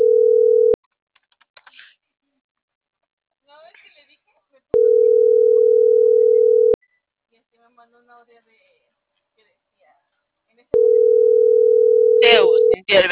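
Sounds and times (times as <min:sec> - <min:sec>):
telephone ringback tone while a call is being placed: 0:00.0 - 0:00.8, 0:04.8 - 0:06.8, 0:10.8 - 0:12.8
speech: 0:12.2 - 0:13.1.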